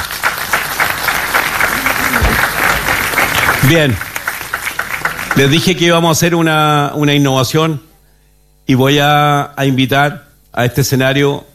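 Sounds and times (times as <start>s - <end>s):
audience applause: 0.0s - 6.0s
speech: 3.6s - 4.1s, 5.4s - 7.9s, 8.7s - 11.5s.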